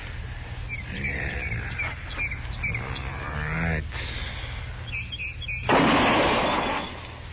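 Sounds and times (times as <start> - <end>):
faint bird chirps: 0.6 - 3.5, 4.8 - 5.7
gunshot from a newly repaired gun test-fired from a rest on a fence rail: 5.7 - 7.0.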